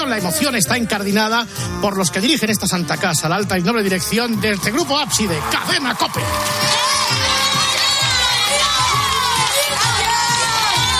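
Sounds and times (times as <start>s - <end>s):
speech: 0.0s - 7.7s
crowd ovation with children: 3.9s - 10.9s.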